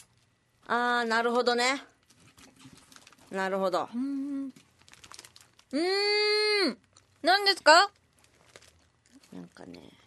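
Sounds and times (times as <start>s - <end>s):
speech: 0.7s - 1.9s, 3.3s - 4.6s, 5.7s - 8.0s, 9.3s - 10.0s
snack package being opened, crinkling wrapper: 2.0s - 3.5s, 4.5s - 5.8s, 6.8s - 10.0s.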